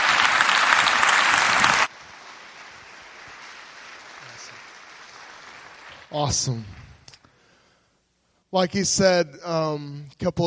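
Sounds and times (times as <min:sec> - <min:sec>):
audience clapping to welcome a speaker: 0:00.0 - 0:07.0
speech: 0:06.1 - 0:06.8, 0:08.5 - 0:10.4.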